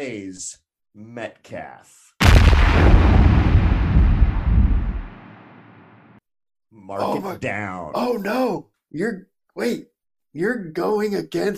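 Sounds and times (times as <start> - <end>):
speech: 0.0 - 3.8, 6.7 - 11.5
explosion sound effect: 2.2 - 6.2.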